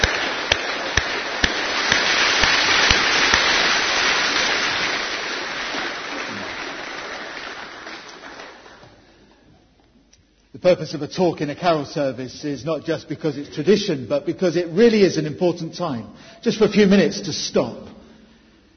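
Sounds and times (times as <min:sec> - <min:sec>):
audience applause: 0:00.0 - 0:09.1
speech: 0:10.6 - 0:17.9.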